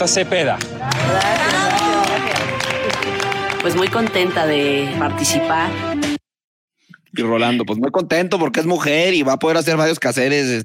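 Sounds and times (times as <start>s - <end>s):
speech: 0.0s - 1.6s, 3.6s - 6.0s, 7.2s - 10.6s
crowd clapping: 0.4s - 4.6s
excited voices cheering: 0.8s - 2.4s.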